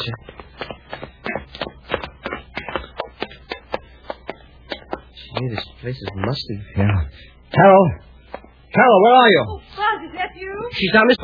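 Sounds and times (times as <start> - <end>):
speech: 0.0 - 0.4, 5.4 - 8.1, 8.7 - 9.7, 10.4 - 11.2
footsteps going down stairs: 0.0 - 4.4.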